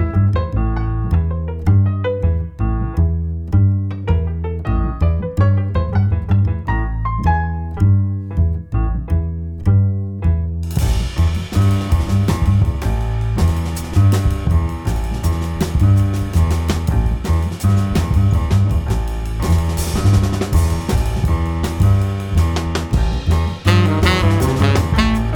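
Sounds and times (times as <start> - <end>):
jazz double bass: 0.0 - 25.3
jazz piano: 0.0 - 25.3
jazz drums: 10.7 - 25.3
jazz saxophone: 23.7 - 25.3.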